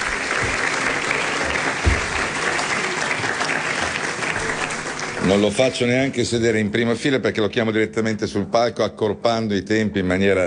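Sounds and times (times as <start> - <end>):
audience applause for arriving minister: 0.0 - 6.3
speech: 5.3 - 10.4.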